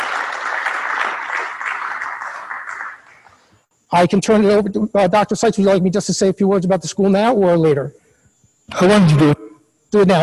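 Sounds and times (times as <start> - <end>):
audience applause: 0.0 - 3.3
speech: 3.9 - 8.0, 8.7 - 10.2.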